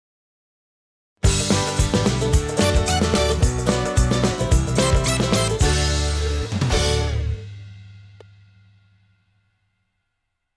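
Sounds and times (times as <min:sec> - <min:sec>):
instrumental music: 0:01.2 - 0:07.7.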